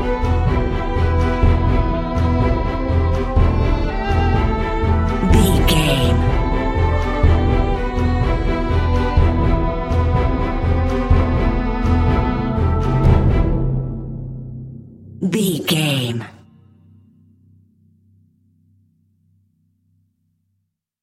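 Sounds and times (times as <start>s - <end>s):
epic music: 0.0s - 16.2s.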